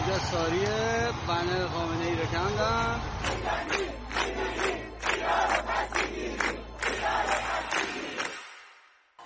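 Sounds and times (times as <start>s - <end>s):
speech: 0.2s - 6.6s
protest crowd chanting slogans: 2.6s - 8.7s.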